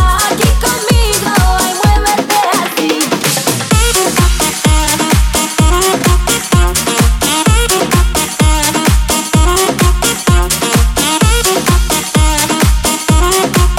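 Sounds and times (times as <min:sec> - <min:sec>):
dance music at 128 BPM: 0:00.0 - 0:13.7.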